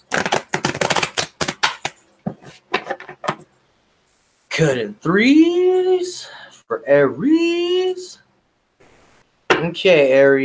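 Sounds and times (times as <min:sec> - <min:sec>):
deck of tarot cards being shuffled: 0:00.0 - 0:03.2
speech: 0:04.6 - 0:08.2, 0:09.6 - 0:10.4.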